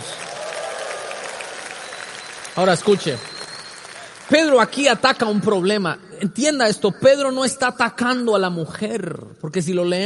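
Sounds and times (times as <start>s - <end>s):
crowd applause: 0.0s - 5.6s
speech: 2.6s - 3.3s, 4.3s - 10.0s.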